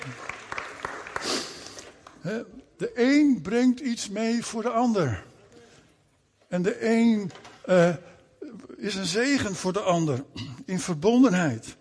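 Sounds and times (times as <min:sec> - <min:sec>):
audience applause: 0:00.0 - 0:02.0
speech: 0:02.2 - 0:05.3, 0:06.5 - 0:08.1, 0:08.8 - 0:11.7.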